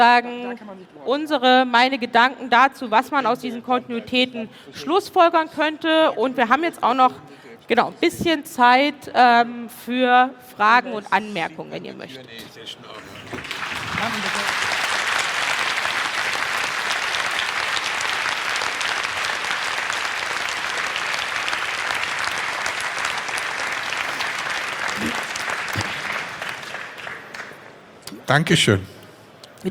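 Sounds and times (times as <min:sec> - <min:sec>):
speech: 0:00.0 - 0:14.8, 0:28.3 - 0:28.9
audience applause: 0:13.0 - 0:27.9.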